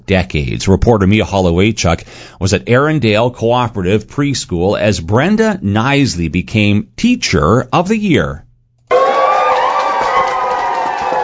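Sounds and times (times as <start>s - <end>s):
speech: 0.1s - 8.4s
parents and preschool students cheering for a preschool teacher: 8.9s - 11.2s.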